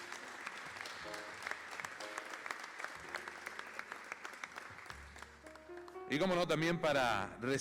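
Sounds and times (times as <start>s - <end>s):
audience applause: 0.0s - 6.0s
speech: 6.1s - 7.5s.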